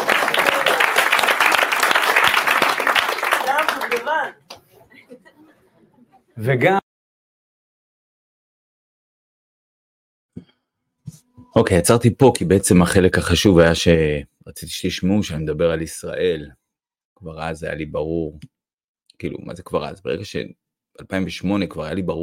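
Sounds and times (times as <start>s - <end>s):
audience applause: 0.0s - 4.4s
laughter: 4.6s - 6.4s
speech: 6.4s - 6.8s, 11.6s - 16.6s, 17.2s - 18.5s, 19.2s - 22.2s.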